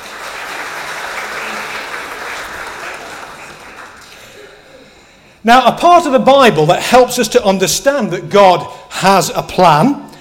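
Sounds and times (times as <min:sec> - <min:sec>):
audience applause: 0:00.0 - 0:04.5
speech: 0:05.4 - 0:10.0.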